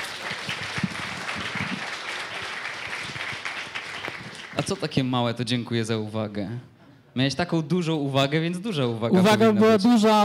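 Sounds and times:
audience applause: 0.0 - 4.9
speech: 4.7 - 10.2.

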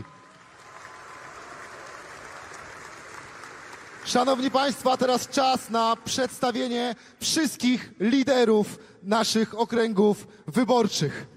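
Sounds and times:
audience applause: 0.0 - 5.6
speech: 4.1 - 11.3.

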